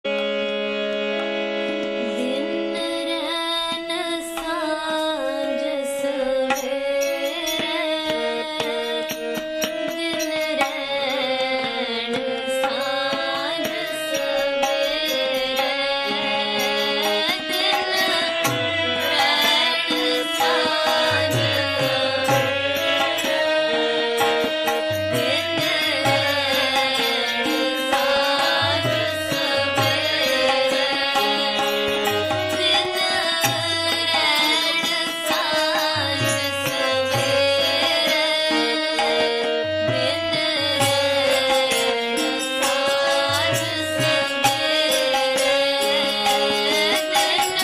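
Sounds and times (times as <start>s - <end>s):
kirtan devotional chanting: 0.1s - 47.6s.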